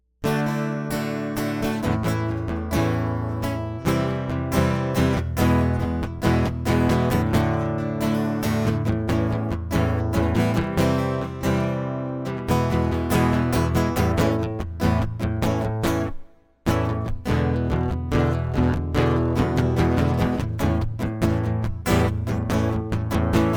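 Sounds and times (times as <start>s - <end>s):
acoustic music: 0.2s - 23.5s.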